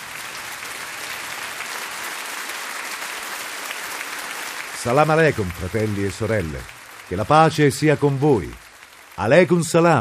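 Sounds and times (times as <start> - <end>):
big applause from an audience: 0.0 - 9.9
speech: 4.8 - 8.6, 9.2 - 9.9.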